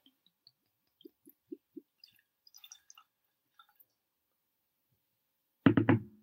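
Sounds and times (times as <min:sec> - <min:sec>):
whisky pouring from a bottle into a glass: 0:00.1 - 0:04.0.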